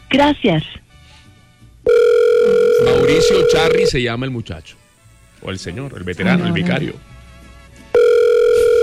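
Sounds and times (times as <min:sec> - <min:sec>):
speech: 0:00.1 - 0:00.8, 0:02.8 - 0:04.8, 0:05.4 - 0:07.1
telephone keypad tones entering a password during a phone call: 0:01.9 - 0:03.9, 0:08.0 - 0:08.8.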